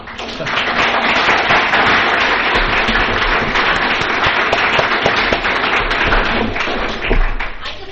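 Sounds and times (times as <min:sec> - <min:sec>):
audience applause: 0:00.0 - 0:07.8.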